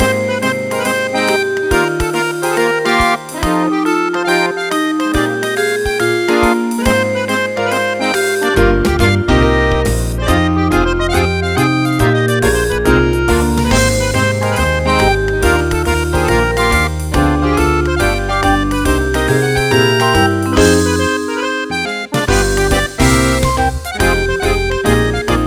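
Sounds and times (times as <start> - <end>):
humorous ringtone: 0.0 - 25.4.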